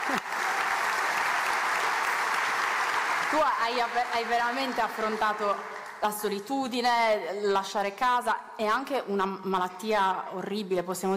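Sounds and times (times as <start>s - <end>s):
audience applause: 0.0s - 6.0s
speech: 3.3s - 11.1s.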